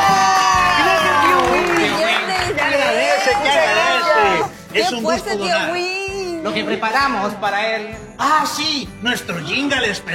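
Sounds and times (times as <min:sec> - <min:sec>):
crowd applauding and cheering: 0:00.0 - 0:04.7
speech: 0:04.9 - 0:10.1.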